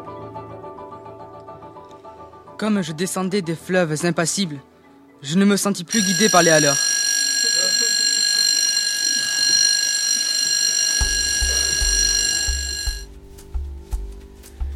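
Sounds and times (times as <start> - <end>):
speech: 2.6 - 6.9
school class bell ringing: 5.9 - 13.0
pulsing low bass rhythm: 11.1 - 14.7.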